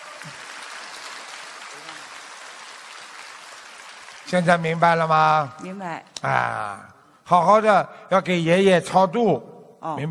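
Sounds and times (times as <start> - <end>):
audience applause: 0.0 - 5.6
speech: 4.3 - 10.0.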